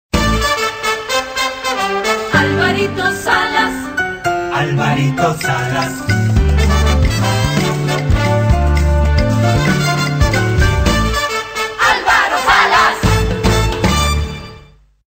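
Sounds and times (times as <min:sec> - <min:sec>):
main theme music for a programme curtain: 0:00.1 - 0:14.8.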